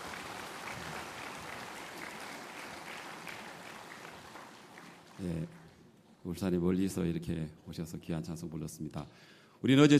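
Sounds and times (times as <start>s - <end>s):
audience applause: 0.0s - 5.8s
speech: 5.2s - 5.6s, 6.2s - 9.9s.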